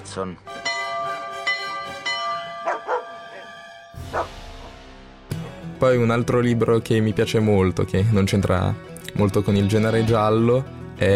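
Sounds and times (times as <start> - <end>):
speech: 0.2 - 0.5, 4.1 - 4.4, 5.8 - 11.1
front door doorbell chiming: 0.5 - 4.1
dog barking at the door: 2.6 - 4.4.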